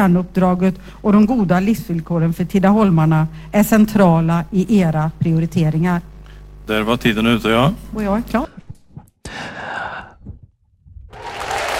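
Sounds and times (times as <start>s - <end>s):
speech: 0.0s - 6.1s, 6.7s - 8.6s
applause: 11.1s - 11.7s.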